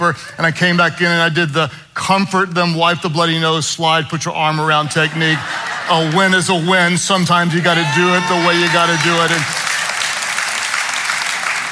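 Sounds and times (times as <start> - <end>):
speech: 0.0 - 9.6
laughter: 4.8 - 9.5
audience clapping: 7.8 - 11.7.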